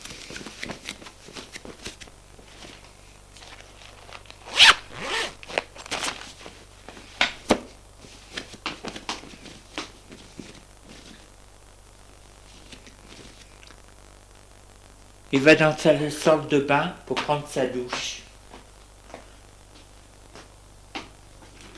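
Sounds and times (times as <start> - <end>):
clothing zipper of man undressing: 4.4 - 6.2
speech: 15.4 - 18.2.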